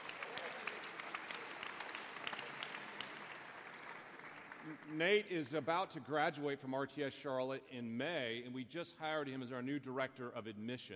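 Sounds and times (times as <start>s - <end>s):
audience applause: 0.0s - 5.8s
speech: 4.6s - 10.9s.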